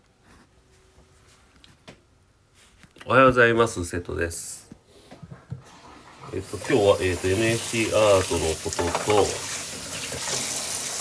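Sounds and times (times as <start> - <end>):
speech: 3.1 - 4.6, 6.4 - 9.6
running tap water: 5.6 - 11.0.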